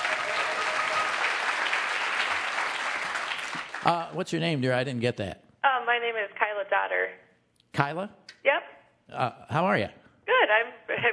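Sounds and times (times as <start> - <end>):
crowd applauding: 0.0 - 4.2
speech: 3.8 - 11.1.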